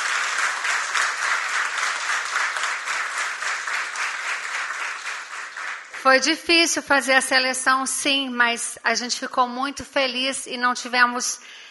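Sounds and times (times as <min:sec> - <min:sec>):
crowd applauding for the honorees: 0:00.0 - 0:06.3
speech: 0:06.0 - 0:11.6.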